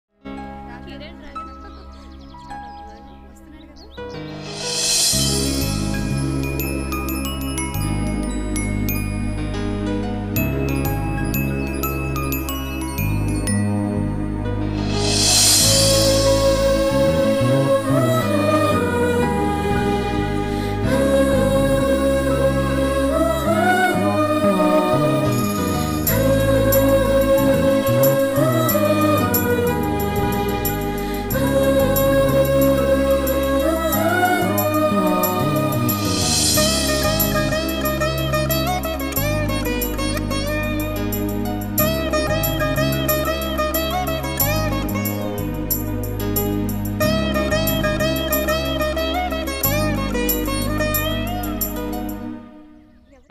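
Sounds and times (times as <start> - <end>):
background music: 0.1 - 53.2.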